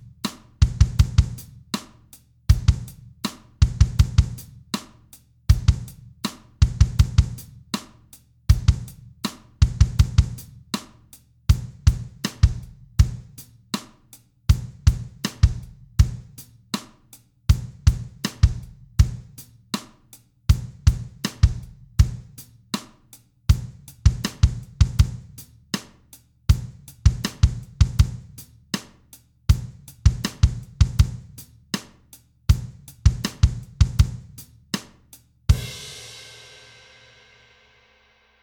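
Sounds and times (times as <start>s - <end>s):
drum rhythm at 80 bpm: 0.0s - 1.9s, 2.5s - 4.9s, 5.5s - 7.9s, 8.5s - 10.9s, 11.5s - 13.9s, 14.5s - 16.9s, 17.5s - 19.9s, 20.5s - 22.9s, 23.5s - 25.9s, 26.5s - 28.9s, 29.5s - 34.9s, 35.5s - 37.2s.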